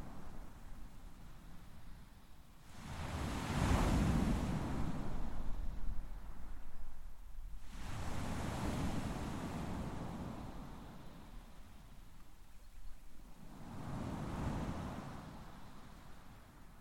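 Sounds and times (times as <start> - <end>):
waves on beach: 2.7 - 5.5, 7.6 - 11.1, 13.5 - 16.3.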